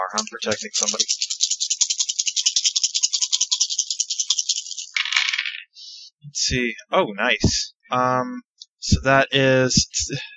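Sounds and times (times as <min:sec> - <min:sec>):
dice rattling: 0:00.0 - 0:05.7
speech: 0:00.1 - 0:01.3, 0:06.4 - 0:10.3.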